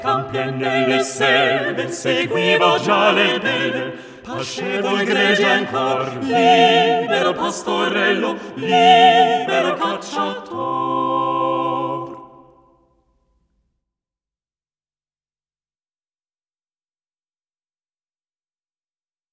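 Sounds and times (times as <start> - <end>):
polyphonic Italian songs: 0.0 - 12.9.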